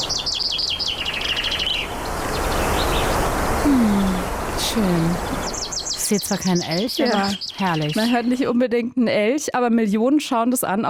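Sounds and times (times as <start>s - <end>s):
birds singing in forest: 0.0s - 8.7s
wind in forest: 0.0s - 10.6s
speech: 4.8s - 5.4s, 6.1s - 10.8s.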